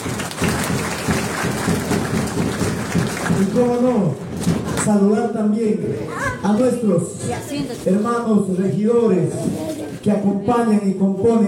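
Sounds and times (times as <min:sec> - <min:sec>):
applause: 0:00.0 - 0:04.7
speech: 0:03.6 - 0:04.2, 0:04.9 - 0:11.4.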